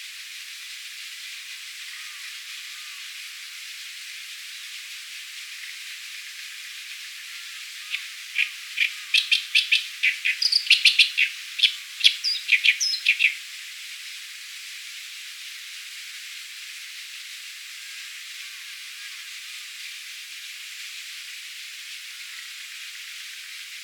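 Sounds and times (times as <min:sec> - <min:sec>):
Acrocephalus orientalis singing: 0:07.9 - 0:13.4.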